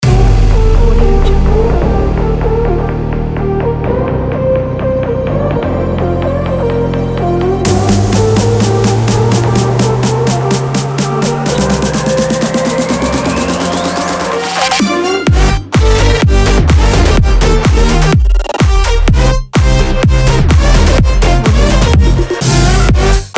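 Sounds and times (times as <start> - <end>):
energetic sport EDM: 0.0 - 23.3.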